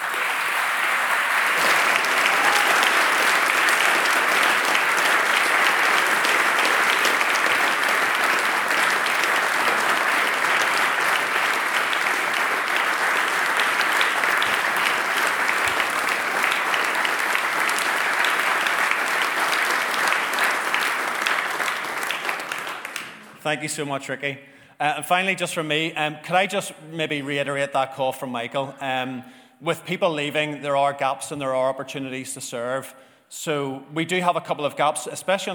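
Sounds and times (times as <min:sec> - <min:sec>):
audience applause: 0:00.0 - 0:23.4
speech: 0:23.5 - 0:35.5.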